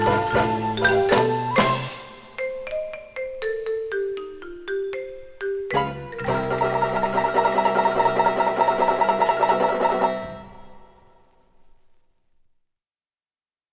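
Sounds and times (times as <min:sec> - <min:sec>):
high school marimba band playing: 0:00.0 - 0:10.6.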